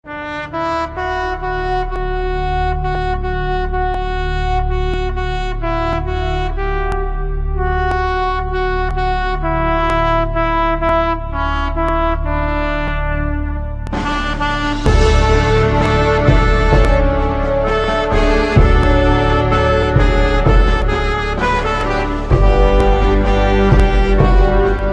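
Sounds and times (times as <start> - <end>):
national anthem music: 0.1 - 24.9.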